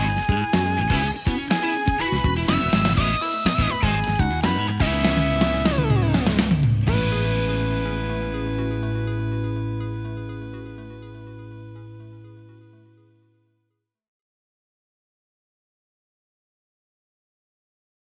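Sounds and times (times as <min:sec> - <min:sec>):
backing track: 0:00.0 - 0:12.8.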